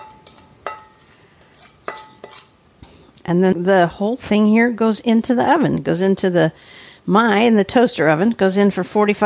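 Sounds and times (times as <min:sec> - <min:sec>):
utensil clinking and scraping a dish spreading almond crisp over peaches: 0:00.0 - 0:02.6
speech: 0:03.3 - 0:09.2.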